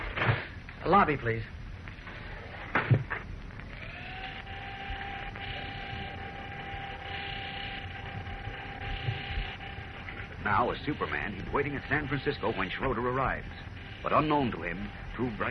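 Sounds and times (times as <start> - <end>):
speech: 0.9 - 1.6, 10.5 - 15.4
elevator motor whine and droning hum: 2.0 - 15.4.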